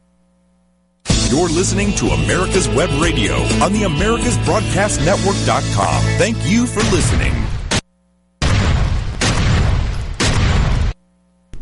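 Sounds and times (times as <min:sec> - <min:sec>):
speech: 0:01.3 - 0:07.6
50-caliber rifle, described as a 100-pound AR-15, firing: 0:08.4 - 0:11.0.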